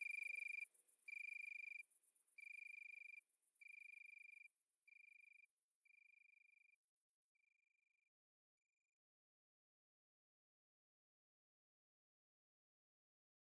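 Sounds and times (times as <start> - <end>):
Italian tree cricket soft trills: 0.0 - 6.4.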